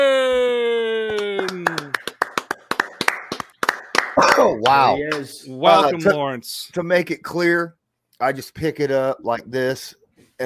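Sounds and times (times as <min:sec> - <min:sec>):
hand clapping: 0:01.1 - 0:05.3
speech: 0:04.5 - 0:10.4.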